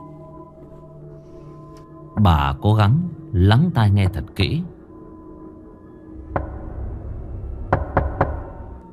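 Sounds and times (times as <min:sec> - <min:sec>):
speech: 0:02.1 - 0:04.8
urgent knocking on a door: 0:06.3 - 0:06.8, 0:07.6 - 0:08.7.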